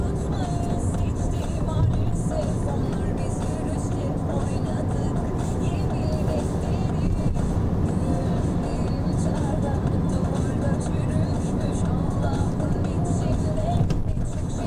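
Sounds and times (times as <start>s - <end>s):
taxi ride soundscape: 0.0s - 14.6s.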